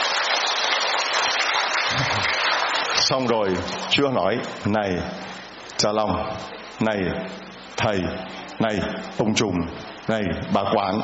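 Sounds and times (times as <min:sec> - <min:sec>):
loud round of applause: 0:00.0 - 0:03.9
speech: 0:03.1 - 0:11.0.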